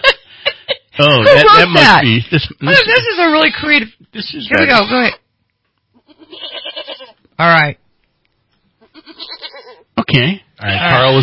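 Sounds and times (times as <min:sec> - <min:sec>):
speech: 0:01.0 - 0:05.2, 0:07.4 - 0:07.8, 0:10.1 - 0:11.2
small grazing goat bleating: 0:04.5 - 0:05.2, 0:05.9 - 0:07.2, 0:08.8 - 0:10.0, 0:10.6 - 0:11.2.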